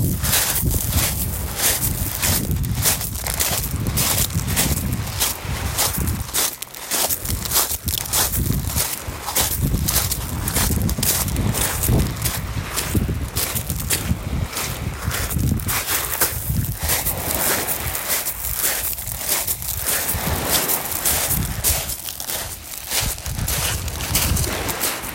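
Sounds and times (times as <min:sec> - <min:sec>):
footsteps crunching: 0:00.0 - 0:25.1
waves washing: 0:00.0 - 0:25.1
wind: 0:00.0 - 0:25.1.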